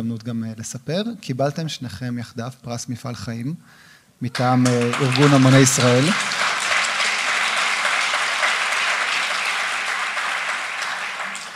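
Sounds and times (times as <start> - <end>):
speech: 0.0 - 6.4
audience applause: 4.4 - 11.5.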